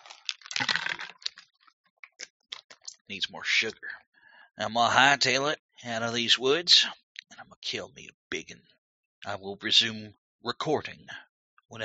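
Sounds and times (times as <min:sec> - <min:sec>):
sipping tea: 0:00.0 - 0:03.1
speech: 0:03.1 - 0:04.0, 0:04.6 - 0:11.8.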